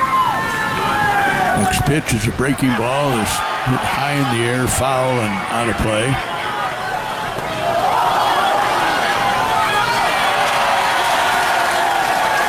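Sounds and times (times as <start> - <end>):
ballpark crowd cheering: 0.0 - 12.4
laughter: 0.0 - 12.4
people clapping: 0.6 - 12.4
speech: 1.6 - 6.3.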